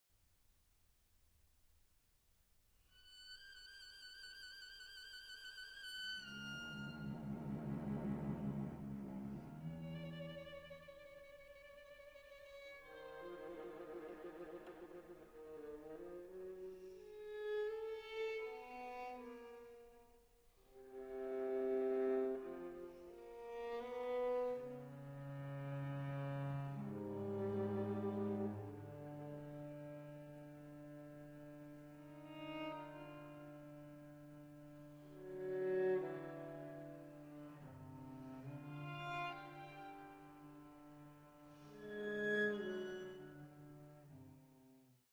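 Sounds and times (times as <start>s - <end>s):
string quartet: 3.1s - 44.7s.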